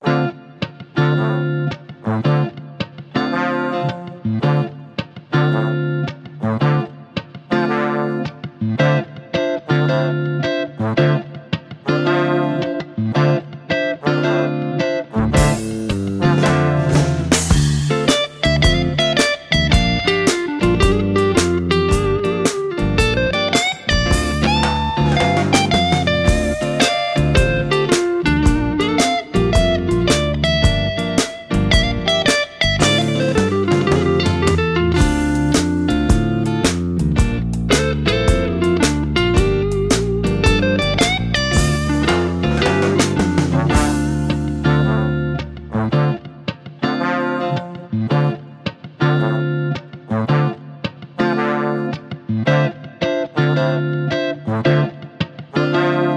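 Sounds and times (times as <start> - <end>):
guitar: 0.0 - 56.1.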